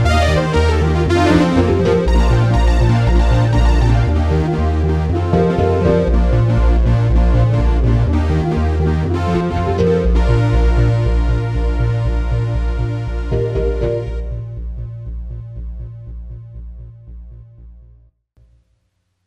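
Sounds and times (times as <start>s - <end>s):
instrumental strings theme: 0.0s - 14.6s.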